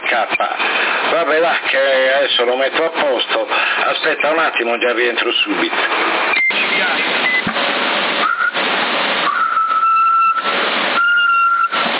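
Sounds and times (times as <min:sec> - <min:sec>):
speech: 0:00.1 - 0:00.7, 0:01.3 - 0:07.7
whistle over CB radio: 0:08.2 - 0:08.6, 0:09.3 - 0:11.8.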